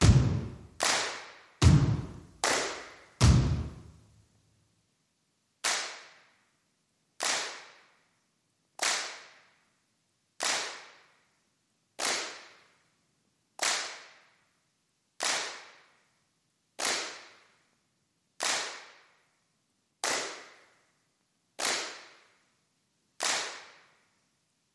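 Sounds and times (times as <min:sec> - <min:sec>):
foot stomps: 0:00.0 - 0:00.6, 0:01.6 - 0:02.2, 0:03.2 - 0:03.8
hand claps: 0:00.0 - 0:01.8, 0:02.4 - 0:03.8, 0:05.6 - 0:06.4, 0:07.2 - 0:08.0, 0:08.8 - 0:09.6, 0:10.4 - 0:11.2, 0:12.0 - 0:12.7, 0:13.6 - 0:14.3, 0:15.2 - 0:16.0, 0:16.8 - 0:17.5, 0:18.4 - 0:19.2, 0:20.0 - 0:20.8, 0:21.6 - 0:22.4, 0:23.2 - 0:24.0.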